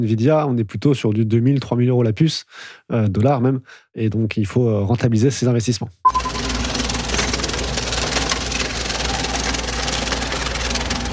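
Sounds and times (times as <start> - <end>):
speech: 0.0 - 6.2
heavy road roller engine droning: 6.1 - 11.1
bitcoin mining machines crunching and cracking under a road roller: 6.2 - 11.1.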